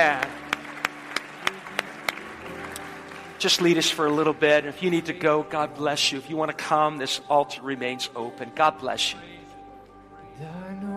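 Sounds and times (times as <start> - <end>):
speech: 0.0 - 0.3, 3.4 - 9.3, 10.4 - 10.6
audience clapping hands: 0.0 - 5.1.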